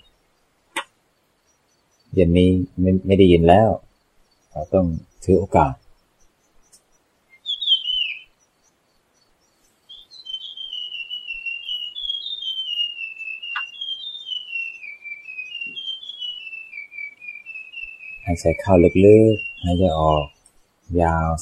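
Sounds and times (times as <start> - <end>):
speech: 2.1 - 3.9, 4.5 - 5.8, 18.3 - 21.4
high whistled bird call: 7.3 - 8.4, 9.9 - 21.4.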